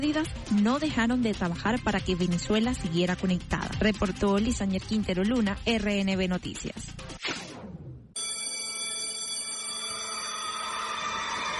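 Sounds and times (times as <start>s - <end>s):
speech: 0.0s - 7.1s
loud electric school bell ringing: 8.2s - 11.4s.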